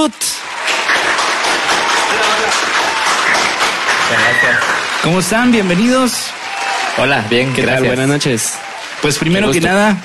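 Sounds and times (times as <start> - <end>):
speech: 0.0 - 0.4, 4.1 - 6.4, 7.0 - 10.0
studio applause: 0.0 - 10.0.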